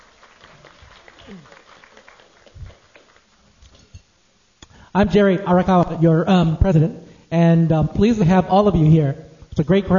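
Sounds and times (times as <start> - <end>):
luncheon audience applause: 0.0 - 3.4
speech: 1.3 - 1.6, 5.0 - 9.9.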